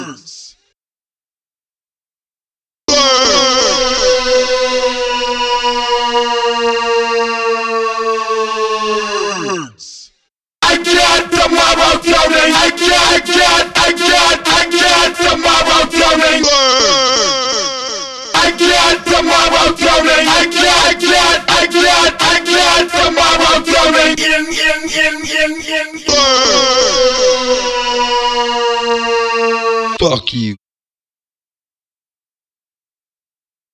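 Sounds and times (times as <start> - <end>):
person singing: 2.9 - 9.7, 10.7 - 30.6.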